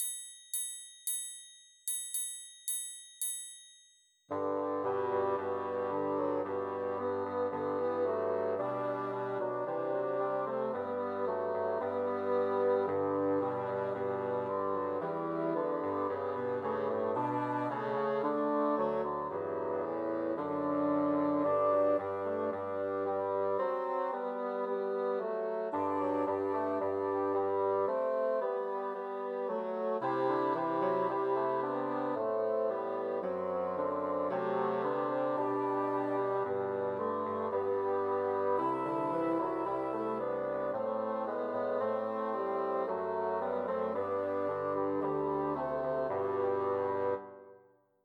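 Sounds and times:
trio of three bassoons playing a Christmas carol: 4.3s - 47.3s.

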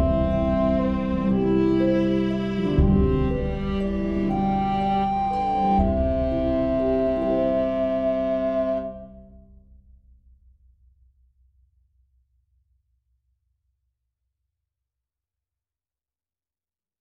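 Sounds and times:
viola melody: 0.0s - 9.4s.

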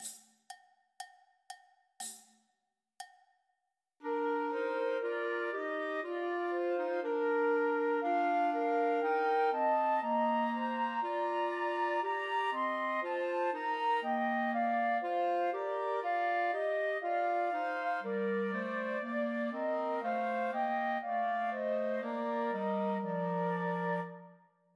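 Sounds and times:
clarinet playing a Christmas trio: 4.0s - 24.5s
two flutes playing a Christmas trio: 4.0s - 24.7s.

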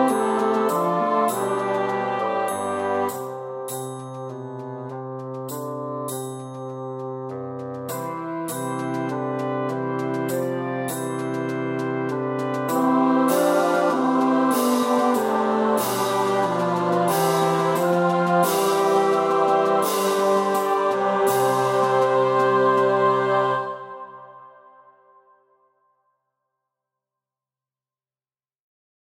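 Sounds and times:
bassoon melody: 0.0s - 3.4s, 7.9s - 24.5s.

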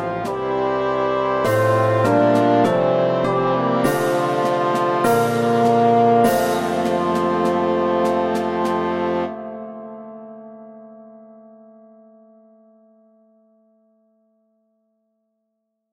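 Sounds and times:
tenoroon melody: 0.0s - 10.8s.

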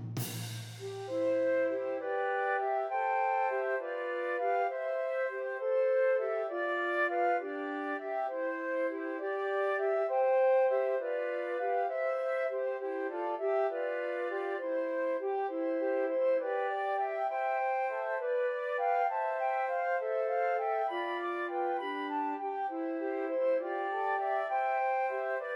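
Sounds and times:
trio for three flutes: 0.2s - 25.5s.

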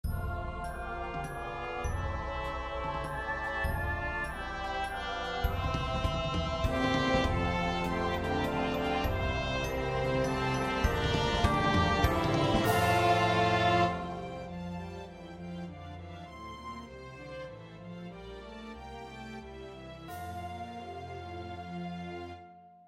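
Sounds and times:
trumpet: 0.2s - 15.1s.

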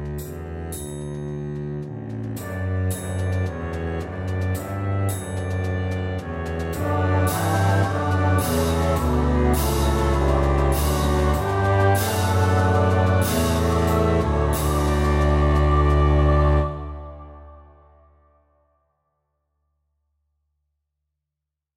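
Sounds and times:
carol backing track with melody: 1.6s - 17.8s.

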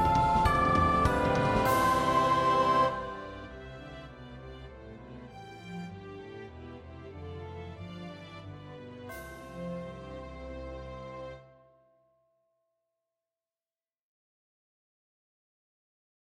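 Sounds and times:
recorder melody: 0.0s - 4.3s.

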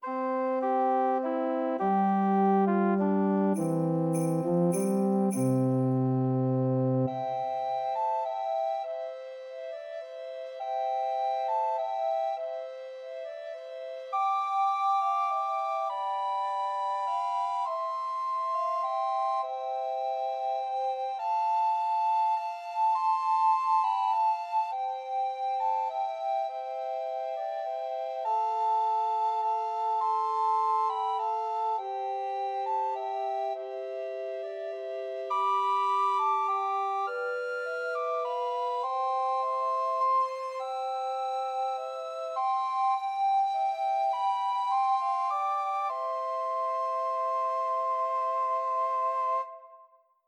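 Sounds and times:
two descant and one treble recorder playing Christmas trios: 0.0s - 20.2s, 21.5s - 49.4s.

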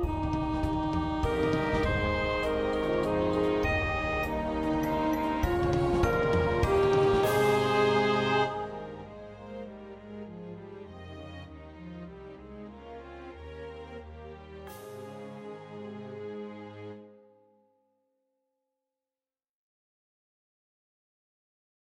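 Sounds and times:
saxophone melody: 0.2s - 9.1s.

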